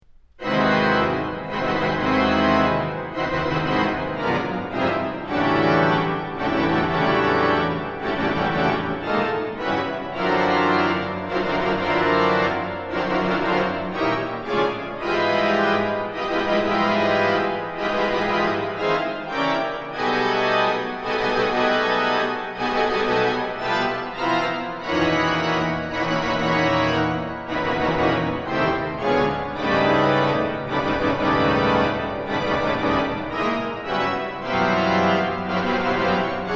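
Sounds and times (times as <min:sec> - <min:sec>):
organ solo: 0:00.4 - 0:36.5.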